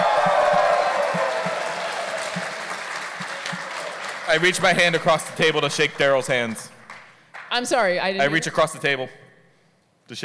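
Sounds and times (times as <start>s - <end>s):
crowd cheering: 0.0s - 5.8s
speech: 4.3s - 6.7s, 7.5s - 9.2s.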